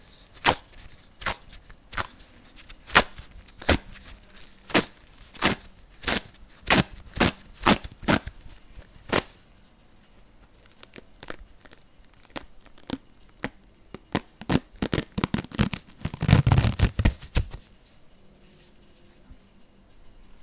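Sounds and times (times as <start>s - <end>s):
bandage stretching: 0.0s - 9.4s, 10.0s - 17.7s.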